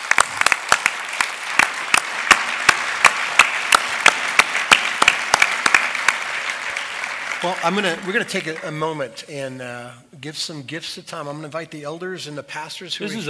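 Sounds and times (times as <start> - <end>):
audience applause: 0.0 - 9.0
speech: 7.4 - 13.2.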